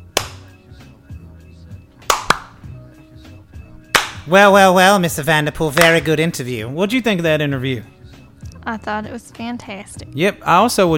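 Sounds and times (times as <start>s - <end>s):
slow clap: 0.0s - 0.6s, 2.0s - 2.7s, 3.8s - 4.3s
speech: 4.2s - 8.0s, 8.7s - 10.9s.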